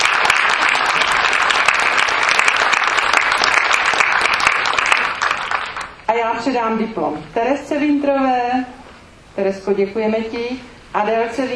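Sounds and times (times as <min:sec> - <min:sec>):
audience applause: 0:00.0 - 0:06.0
speech: 0:06.3 - 0:08.8, 0:09.4 - 0:11.5.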